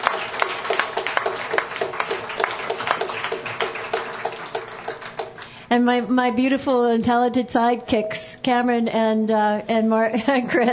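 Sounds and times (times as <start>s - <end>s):
audience applause: 0.0s - 5.6s
speech: 5.7s - 10.7s.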